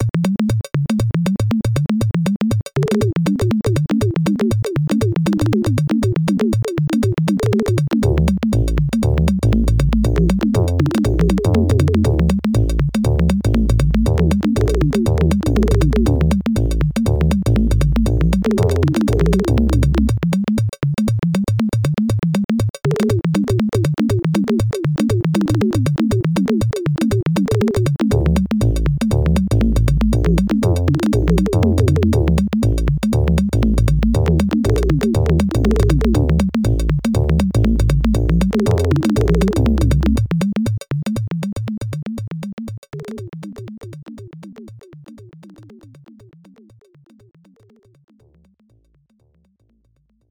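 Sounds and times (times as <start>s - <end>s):
short jungle music loop: 0.0s - 47.1s.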